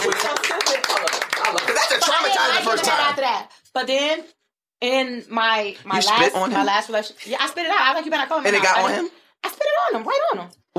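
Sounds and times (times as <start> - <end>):
rapid hand clapping: 0.0 - 2.7
people laughing and whooping: 0.0 - 3.1
speech: 2.7 - 10.7.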